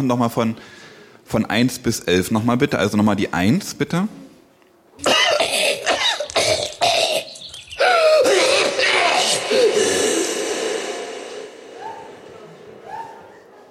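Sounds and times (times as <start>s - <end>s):
speech: 0.0s - 4.2s
harsh coughs and rough hacking cough with echo: 5.0s - 11.8s.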